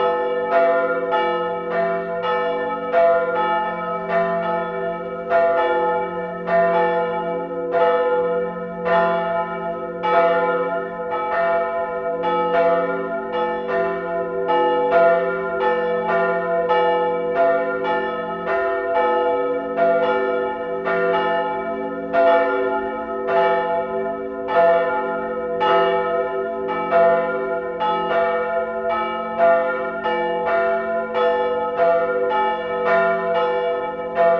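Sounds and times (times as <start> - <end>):
bells of a small church: 0.0 - 34.3.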